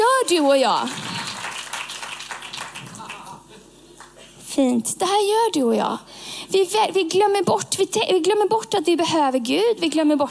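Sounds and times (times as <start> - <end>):
speech: 0.3 - 1.0, 4.5 - 10.2
applause: 0.6 - 3.4.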